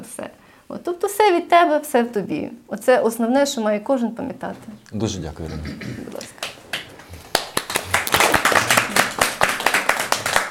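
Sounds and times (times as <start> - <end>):
speech: 0.8 - 6.4
audience applause: 6.3 - 10.4.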